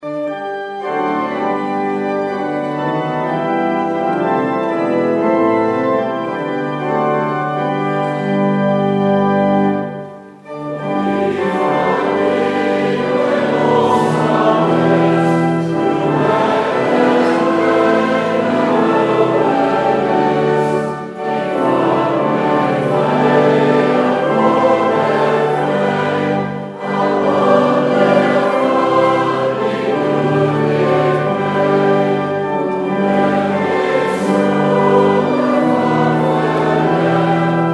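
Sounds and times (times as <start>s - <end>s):
congregation singing: 0.0s - 37.7s.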